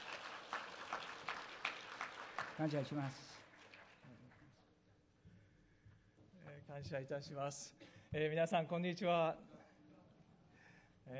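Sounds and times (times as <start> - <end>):
audience applause: 0.0 - 4.4
speech: 2.6 - 3.3, 6.8 - 9.5.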